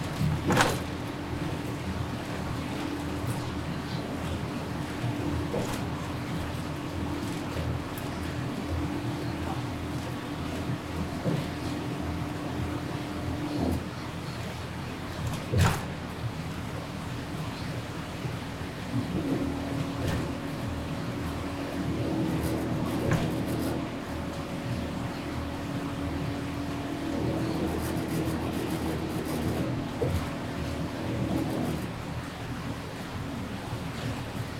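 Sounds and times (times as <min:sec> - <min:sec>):
city bus engine droning on a rainy day: 0:00.0 - 0:34.5.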